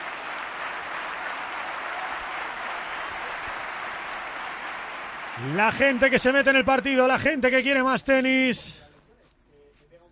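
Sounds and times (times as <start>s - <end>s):
tennis crowd ovation at the Manolo Santana court, Caja Mágica: 0.0s - 8.0s
speech: 5.4s - 8.8s.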